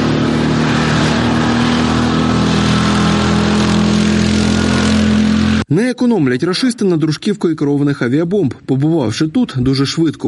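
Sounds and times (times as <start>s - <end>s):
quad bike engine rumbling: 0.0s - 5.6s
speech: 6.1s - 10.2s.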